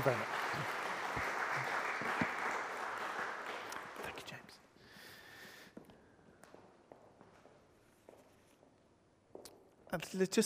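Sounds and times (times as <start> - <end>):
speech: 0.0 - 0.8, 10.0 - 10.4
audience round of applause: 0.0 - 4.2.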